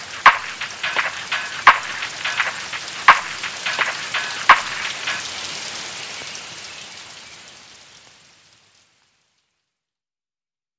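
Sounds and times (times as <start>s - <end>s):
lofi cafe music: 0.0s - 5.3s
summer rain: 0.0s - 10.0s.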